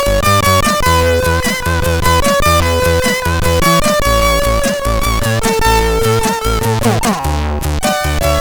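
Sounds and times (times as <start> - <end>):
chiptune music on a MOS6581R3 sound chip: 0.2 - 8.3.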